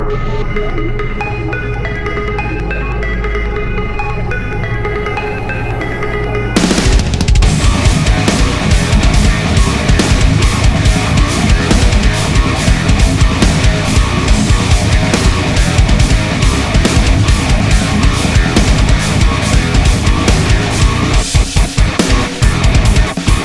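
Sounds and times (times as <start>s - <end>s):
groove music: 0.1s - 23.4s.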